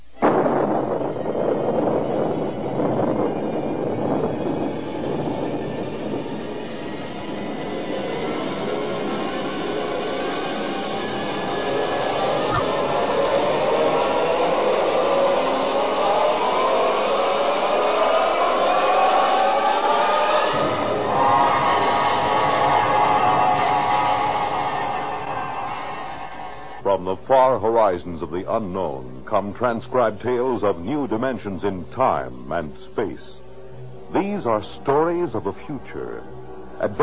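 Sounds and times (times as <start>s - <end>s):
rocket blastoff roar: 0.2s - 26.8s
speech: 27.3s - 33.4s, 34.1s - 37.0s.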